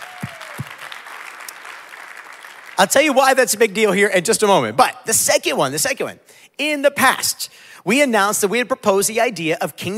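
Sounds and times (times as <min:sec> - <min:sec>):
audience clapping: 0:00.0 - 0:03.6
speech: 0:02.8 - 0:09.9.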